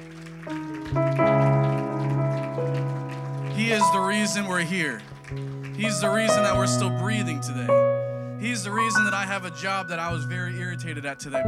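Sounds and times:
audience clapping hands in praise: 0.0 - 7.7
organ or keyboard chords: 0.0 - 11.4
speech: 3.7 - 11.4.

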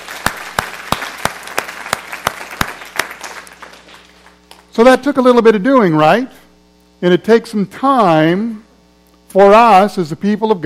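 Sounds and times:
audience round of applause: 0.0 - 4.6
speech: 4.8 - 6.4, 7.0 - 8.6, 9.3 - 10.6.

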